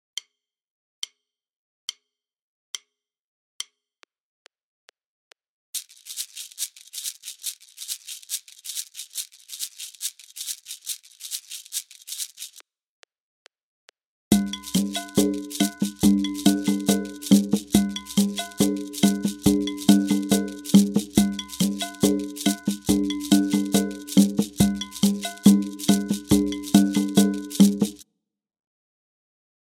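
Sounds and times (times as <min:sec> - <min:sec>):
kpanlogo drumming: 0:14.3 - 0:28.0.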